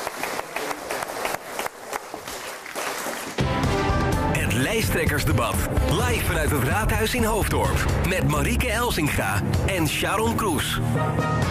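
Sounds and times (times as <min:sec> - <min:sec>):
audience applause: 0:00.0 - 0:03.5
speech: 0:04.8 - 0:11.4.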